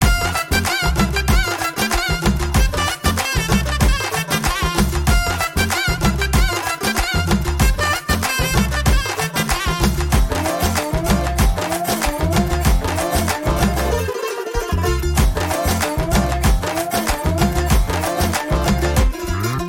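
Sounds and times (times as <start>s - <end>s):
background music: 0.0s - 19.6s.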